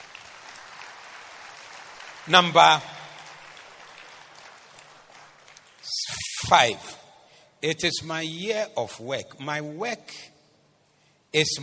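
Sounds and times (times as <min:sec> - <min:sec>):
audience applause: 0:00.0 - 0:05.8
speech: 0:02.3 - 0:02.9, 0:06.5 - 0:07.0, 0:07.6 - 0:10.3, 0:11.3 - 0:11.6.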